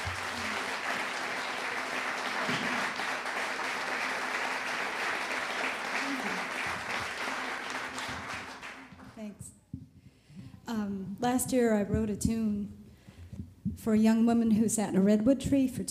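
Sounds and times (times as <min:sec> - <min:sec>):
audience applause: 0:00.0 - 0:09.2
speech: 0:11.4 - 0:12.8, 0:13.8 - 0:15.8.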